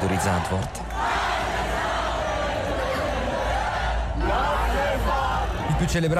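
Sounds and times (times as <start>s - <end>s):
fans singing a chant in the stands: 0.0s - 6.0s.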